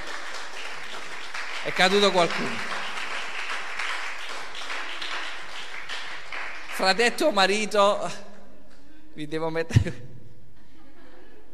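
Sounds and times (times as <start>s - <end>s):
crowd applause: 0.0s - 7.2s
speech: 1.6s - 2.7s, 6.8s - 8.3s, 9.2s - 10.1s
laughter: 10.6s - 11.5s.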